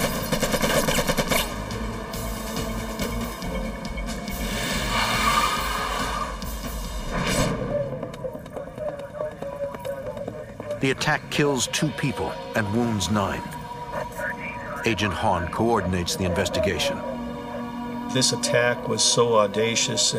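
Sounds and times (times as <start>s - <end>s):
machine gun fire: 0.0s - 1.6s
constant roar: 0.0s - 20.1s
speech: 10.8s - 13.6s, 14.8s - 17.1s, 18.1s - 20.1s.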